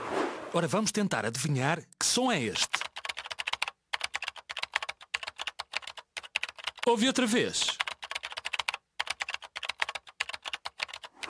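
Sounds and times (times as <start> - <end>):
speech: 0.5 - 2.8, 6.9 - 7.8
fingers typing on a computer keyboard: 2.6 - 6.9, 7.6 - 11.2.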